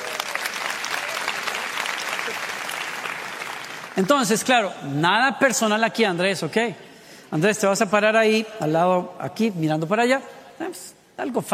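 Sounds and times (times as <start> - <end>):
applause: 0.0 - 4.5
speech: 4.0 - 11.5.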